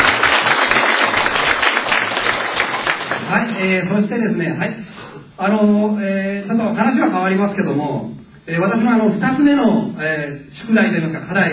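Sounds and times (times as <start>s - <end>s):
audience applause: 0.0s - 3.4s
speech: 3.6s - 11.5s.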